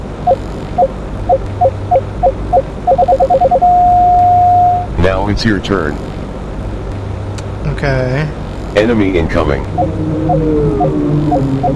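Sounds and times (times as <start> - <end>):
speech: 0.2 - 1.0, 5.3 - 6.1, 7.8 - 11.7
continuous beep: 0.2 - 5.0, 9.7 - 11.7.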